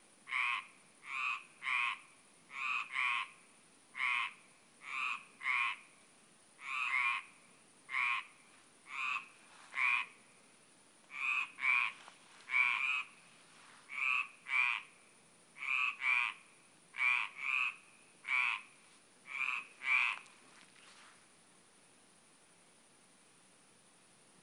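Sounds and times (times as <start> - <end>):
croaking: 0.3 - 3.4, 4.0 - 5.9, 6.6 - 10.2, 11.1 - 13.3, 13.9 - 15.0, 15.6 - 20.8.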